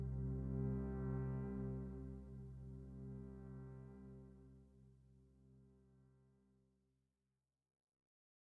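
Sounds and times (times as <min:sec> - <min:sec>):
Elektron Digitone synth pad: 0:00.0 - 0:05.1.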